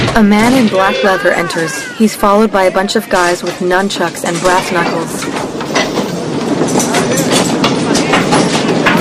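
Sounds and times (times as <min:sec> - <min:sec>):
speech: 0:00.1 - 0:05.5
train clickety-clack on rails: 0:03.3 - 0:08.9.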